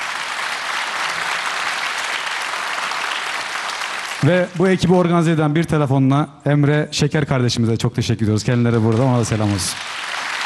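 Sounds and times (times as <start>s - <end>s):
audience applause: 0.0s - 4.9s, 8.7s - 10.4s
speech: 4.2s - 9.9s.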